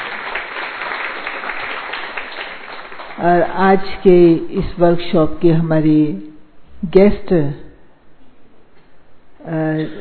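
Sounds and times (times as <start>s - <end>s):
audience applause: 0.0s - 3.2s
speech: 3.2s - 7.6s, 9.5s - 10.0s.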